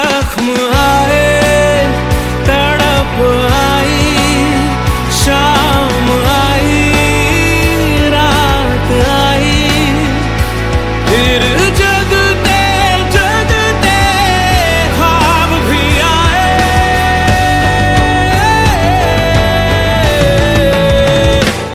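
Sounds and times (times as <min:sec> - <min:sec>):
Hindi Bollywood ringtone: 0:00.0 - 0:21.7.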